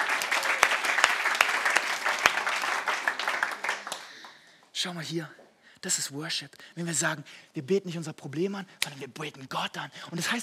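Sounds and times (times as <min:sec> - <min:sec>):
audience applauding: 0:00.0 - 0:04.5
speech: 0:04.8 - 0:10.4.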